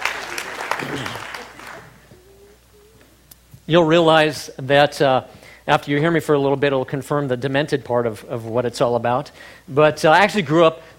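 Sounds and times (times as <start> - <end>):
audience clapping: 0.0 - 2.1
speech: 3.7 - 10.9.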